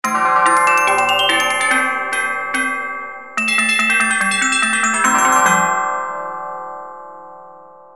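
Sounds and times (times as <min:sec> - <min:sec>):
gamelan: 0:00.0 - 0:06.0.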